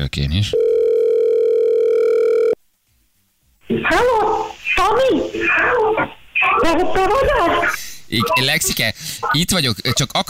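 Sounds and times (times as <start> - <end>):
speech: 0.0 - 0.7, 3.7 - 10.2
telephone dial tone while a call is placed: 0.6 - 2.6.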